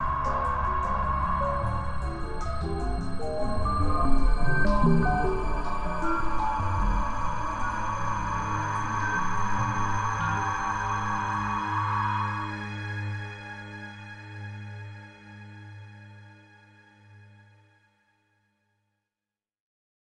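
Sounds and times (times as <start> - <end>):
music: 0.0 - 19.0.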